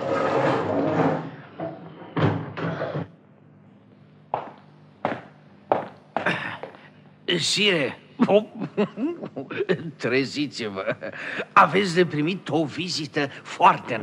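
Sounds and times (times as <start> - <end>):
prison cell door in the Bastille unlocked with a scraping rattle: 0.0 - 3.1
speech: 7.3 - 14.0
laughter: 8.2 - 10.0, 10.7 - 11.6.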